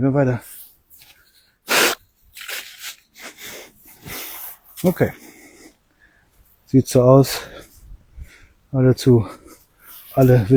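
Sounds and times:
speech: 0.0 - 0.6, 4.8 - 5.2, 6.7 - 7.6, 8.7 - 9.4, 10.2 - 10.5
person blowing nose: 1.7 - 4.4.

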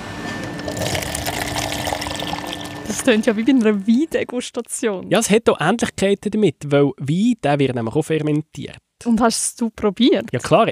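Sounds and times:
kombucha pouring from a tap into glasses: 0.5 - 3.1
speech: 3.0 - 10.7.

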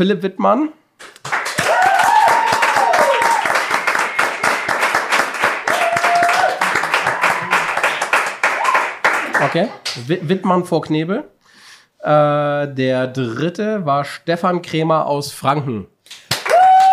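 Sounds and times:
speech: 0.0 - 0.8, 9.4 - 11.4, 12.0 - 15.9
audience applause: 1.2 - 10.0, 16.3 - 16.9.

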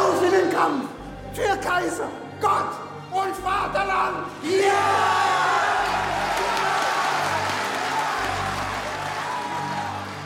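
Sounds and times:
speech: 0.6 - 5.4
large crowd cheering and applauding: 4.7 - 10.2.

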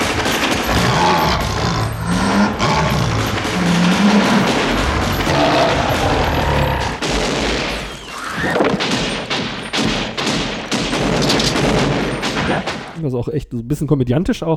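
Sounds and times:
film gunfire from many different weapons: 0.0 - 13.0
speech: 13.1 - 14.5.

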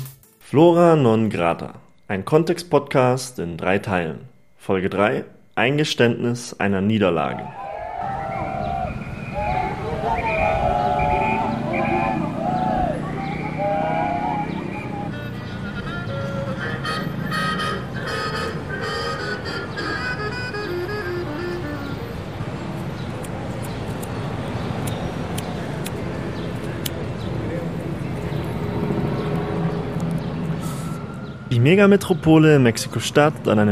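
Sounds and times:
speech: 0.5 - 8.2, 31.6 - 33.6
traffic rumble on a busy city street: 7.4 - 33.6.

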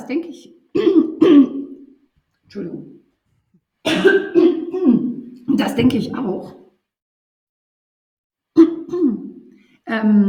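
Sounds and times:
speech: 0.1 - 1.5, 2.5 - 3.0, 3.8 - 6.6, 9.9 - 10.2
throat clearing: 0.8 - 1.9, 3.9 - 5.3, 8.6 - 9.4.

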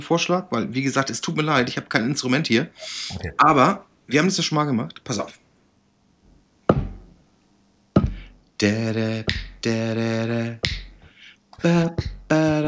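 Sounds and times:
speech: 0.0 - 5.4, 8.6 - 10.8, 11.6 - 12.6
person humming: 8.0 - 12.6
finger snapping: 9.3 - 9.5, 10.6 - 10.9.

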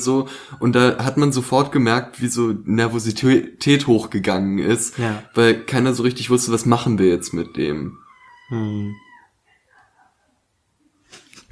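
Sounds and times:
speech: 0.0 - 9.0
cats squeaking: 0.3 - 10.2.

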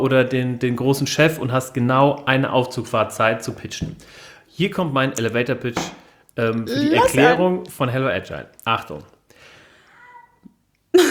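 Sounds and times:
speech: 0.0 - 9.1
cat meowing: 6.7 - 7.4.

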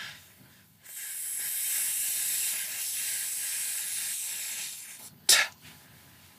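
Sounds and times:
long hissing exhale through the teeth in a breathing exercise: 0.8 - 5.5
sharp t-like burst of air: 0.9 - 5.5.

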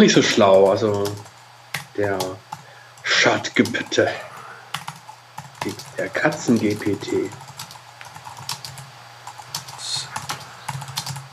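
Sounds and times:
speech: 0.0 - 1.3, 2.0 - 2.4, 3.1 - 4.3, 5.6 - 7.4
typing on a computer keyboard: 0.4 - 2.6, 4.7 - 11.3.

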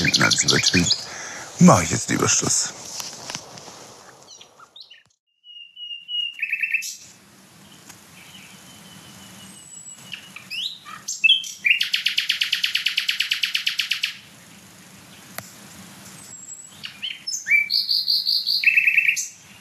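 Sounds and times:
nightingale singing: 0.0 - 14.2, 16.1 - 19.5
speech: 0.4 - 1.0, 1.6 - 2.8.

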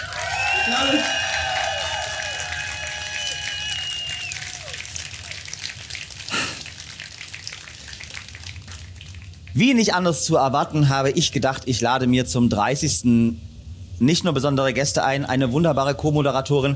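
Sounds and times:
live audience applause: 0.0 - 9.5
whistle-like tones: 0.3 - 2.2, 2.8 - 4.6
speech: 0.7 - 1.2, 9.6 - 16.7.

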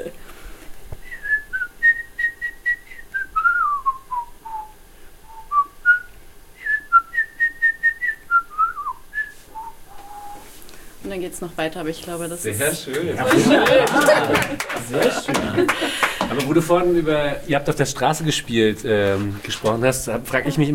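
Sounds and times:
person whistling a bird melody: 1.0 - 10.5
speech: 11.2 - 20.7
laughter: 13.0 - 16.6.

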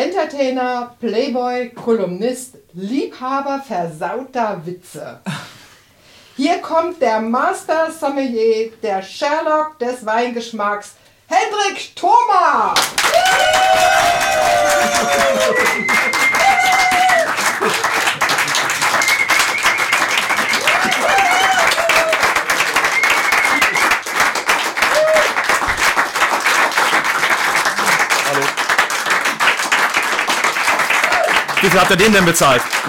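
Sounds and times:
speech: 0.2 - 5.5, 6.4 - 17.9, 31.6 - 32.8
audience clapping: 12.8 - 32.8.

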